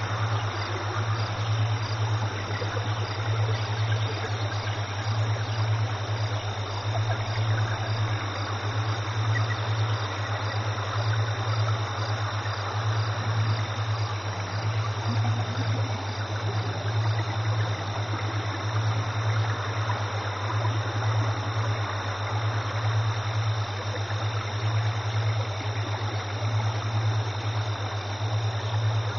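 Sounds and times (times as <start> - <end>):
ambience: 0.0 - 29.1
alpha frequency tones: 14.6 - 18.0.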